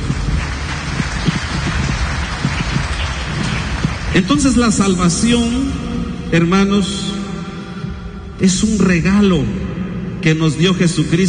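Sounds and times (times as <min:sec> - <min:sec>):
audience clapping: 0:00.0 - 0:05.4
speech: 0:04.2 - 0:07.1, 0:08.4 - 0:11.2.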